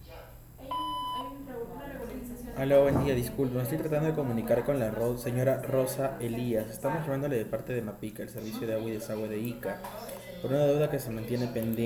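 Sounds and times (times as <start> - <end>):
voicemail recording tone beep: 0.7 - 1.3
speech: 2.6 - 11.8.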